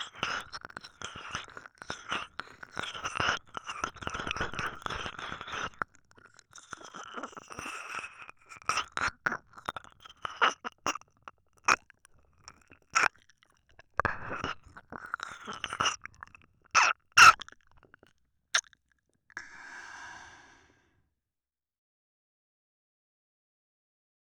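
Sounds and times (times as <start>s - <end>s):
ASMR ear licking sounds: 0.0s - 18.8s.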